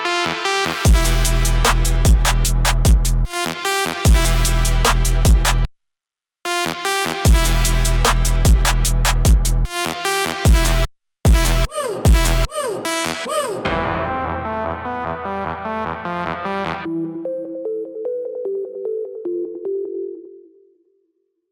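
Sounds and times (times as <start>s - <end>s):
trap music: 0.0s - 5.7s, 6.5s - 17.0s.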